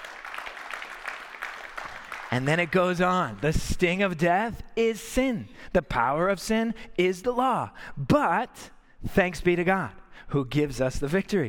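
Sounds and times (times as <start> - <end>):
audience clapping: 0.0 - 3.5
speech: 2.3 - 11.4.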